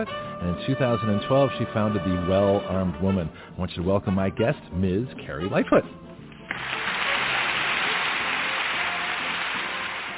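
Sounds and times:
speech: 0.0s - 6.1s
audience applause: 6.5s - 10.1s.

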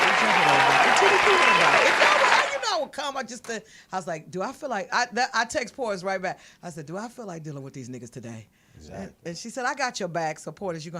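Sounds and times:
applause sound effect from soundboard button: 0.0s - 2.6s
speech: 2.9s - 10.9s.

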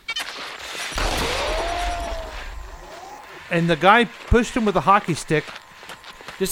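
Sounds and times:
gunshots fired by a robot at targets: 0.8s - 4.8s
speech: 3.5s - 5.6s.

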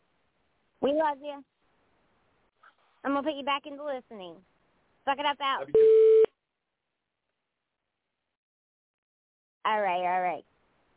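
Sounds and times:
speech: 0.8s - 1.6s, 3.0s - 6.1s, 9.6s - 10.5s
phone line beep: 5.8s - 6.3s.

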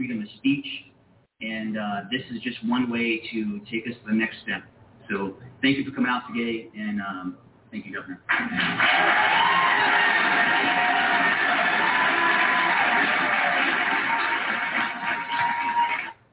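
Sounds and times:
speech: 0.0s - 11.0s
large crowd clapping: 8.3s - 16.2s.

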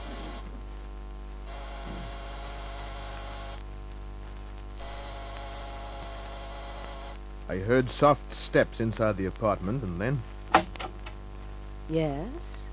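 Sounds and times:
apartment door buzzer: 0.0s - 0.5s, 1.4s - 3.6s, 4.8s - 7.2s
speech: 7.5s - 10.3s, 11.9s - 12.6s.

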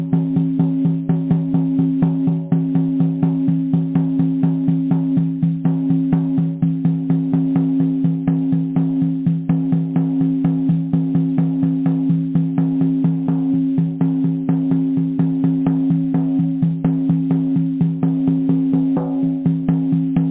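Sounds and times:
drumming: 0.0s - 20.3s.

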